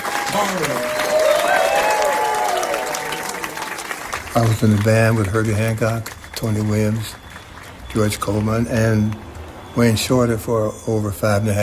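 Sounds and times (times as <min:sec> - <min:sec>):
audience applause welcoming a performer onto the New York Stage: 0:00.0 - 0:09.4
speech: 0:00.3 - 0:01.0, 0:04.4 - 0:07.2, 0:07.9 - 0:11.6.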